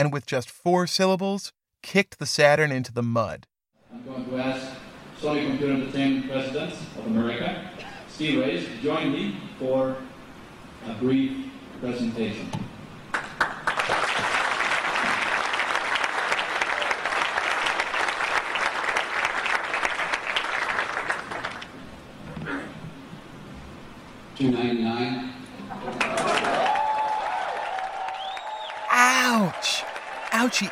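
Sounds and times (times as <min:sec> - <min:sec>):
speech: 0:00.0 - 0:10.1, 0:10.8 - 0:12.7, 0:24.4 - 0:25.3, 0:30.5 - 0:30.7
conference crowd applause: 0:13.1 - 0:21.7, 0:25.8 - 0:30.7.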